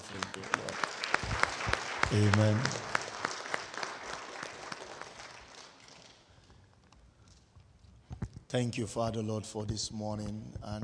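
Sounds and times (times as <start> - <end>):
crowd clapping: 0.0 - 6.4
speech: 2.1 - 2.8, 8.5 - 10.8.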